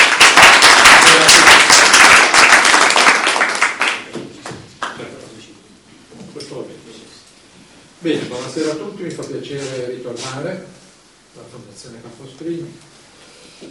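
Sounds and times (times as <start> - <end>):
audience applause for introduction: 0.0 - 4.2
speech: 8.0 - 10.7, 11.5 - 12.9.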